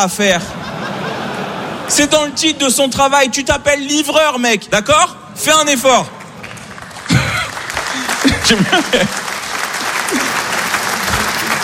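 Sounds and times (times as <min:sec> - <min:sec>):
speech: 0:00.0 - 0:00.7, 0:01.9 - 0:06.2, 0:08.4 - 0:09.2
laughter: 0:00.3 - 0:02.9, 0:07.0 - 0:11.6
audience applause: 0:06.2 - 0:11.6.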